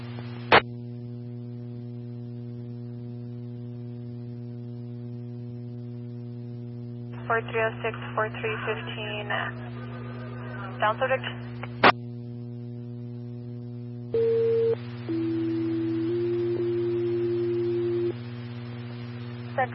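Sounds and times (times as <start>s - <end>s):
constant radio hum: 0.0s - 0.7s, 6.5s - 12.0s, 14.2s - 19.7s
crackly static: 0.0s - 19.7s.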